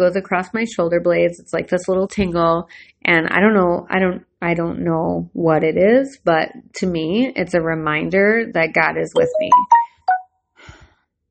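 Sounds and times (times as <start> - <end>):
speech: 0.0 - 9.8
phone email notification jingle: 9.2 - 10.2.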